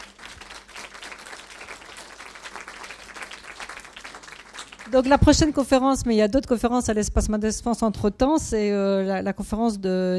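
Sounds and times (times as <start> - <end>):
audience applause: 0.0 - 5.4
speech: 4.9 - 10.1.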